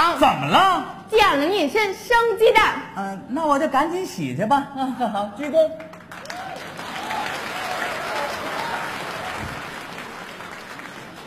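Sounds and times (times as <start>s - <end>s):
speech: 0.2s - 6.3s
audience applause: 5.9s - 11.2s.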